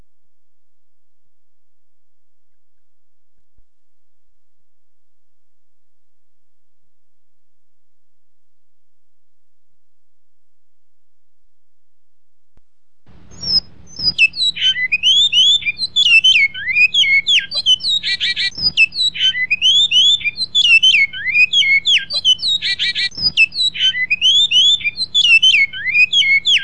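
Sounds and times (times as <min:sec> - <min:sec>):
great-billed seed finch whistling song with buzzy rattle: 0:13.3 - 0:26.6.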